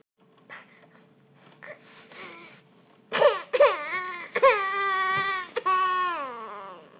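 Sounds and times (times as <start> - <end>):
hungry baby girl crying: 3.4 - 6.9.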